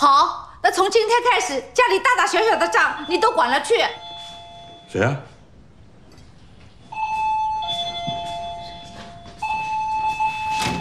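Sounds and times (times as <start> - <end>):
speech: 0.0 - 4.1, 4.9 - 5.3
doorbell ringing: 3.0 - 5.0, 6.9 - 10.7.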